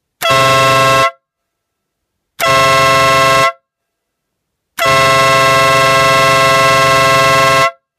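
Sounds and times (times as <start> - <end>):
two-tone horn: 0.2 - 1.2, 2.4 - 3.7, 4.8 - 7.9.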